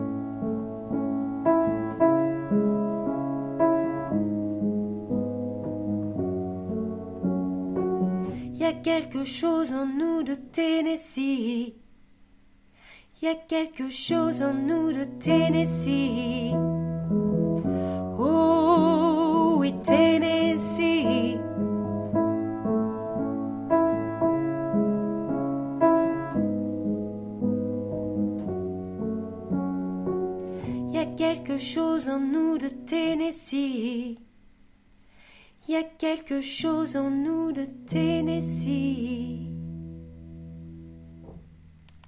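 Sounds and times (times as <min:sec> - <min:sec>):
alto voice: 0:00.0 - 0:11.8, 0:13.2 - 0:16.8, 0:17.4 - 0:29.6, 0:30.3 - 0:34.2, 0:35.7 - 0:39.7.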